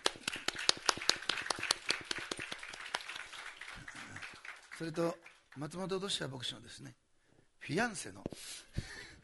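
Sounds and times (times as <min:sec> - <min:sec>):
audience applause welcoming guests: 0:00.0 - 0:05.7
speech: 0:04.8 - 0:07.0, 0:07.7 - 0:08.6.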